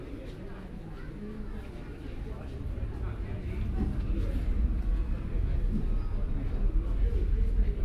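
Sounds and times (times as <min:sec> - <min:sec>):
airport ambience at Kathmandu Airport in Nepal: 0:00.3 - 0:07.8.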